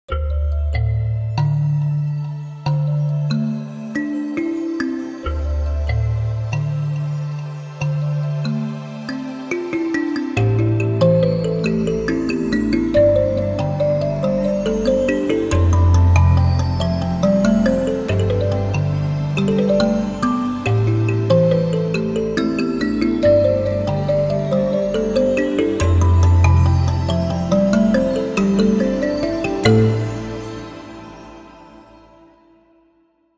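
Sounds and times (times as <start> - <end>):
easy kalimba woodland music: 0.1 - 31.8.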